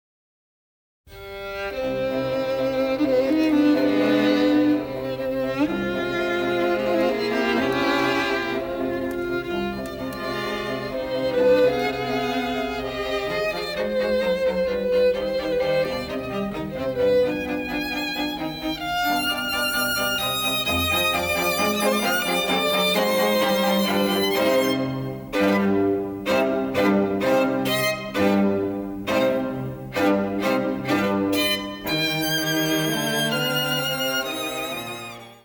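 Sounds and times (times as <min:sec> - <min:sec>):
strings playing: 0:01.2 - 0:35.4.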